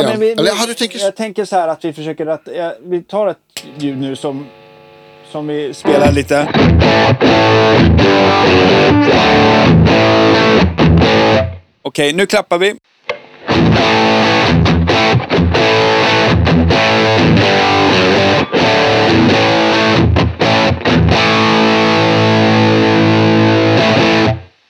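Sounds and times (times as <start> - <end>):
speech: 0.0 - 4.6, 5.3 - 12.9
distorted electric guitar through high-gain amp: 3.6 - 11.6, 13.2 - 24.6.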